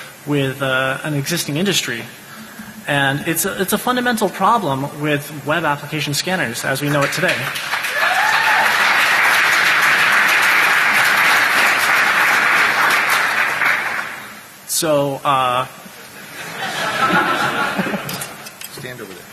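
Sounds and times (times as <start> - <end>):
speech: 0.2 - 2.2, 2.9 - 7.7, 14.8 - 15.8
audience clapping: 6.8 - 14.5
laughter: 15.9 - 18.5.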